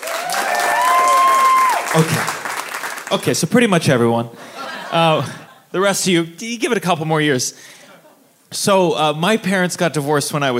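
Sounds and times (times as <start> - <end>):
audience applause: 0.0 - 3.3
speech: 2.0 - 2.4, 3.1 - 7.8, 8.5 - 10.5.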